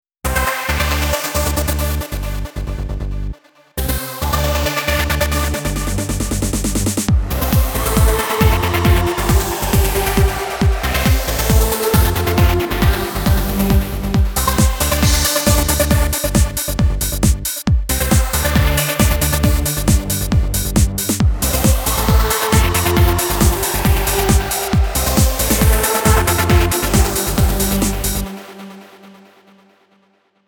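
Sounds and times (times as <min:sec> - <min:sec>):
trance music: 0:00.3 - 0:29.7.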